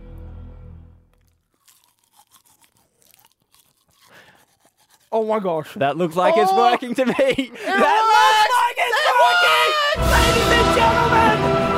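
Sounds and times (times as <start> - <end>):
toothbrush scrubbing teeth: 1.5 - 6.9
speech: 5.1 - 8.2
laughter: 6.0 - 11.2.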